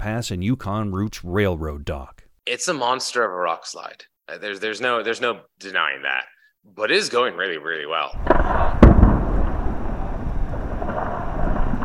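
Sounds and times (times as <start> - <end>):
speech: 0.0 - 8.8
explosive charges detonating to break apart large rocks: 8.2 - 11.8.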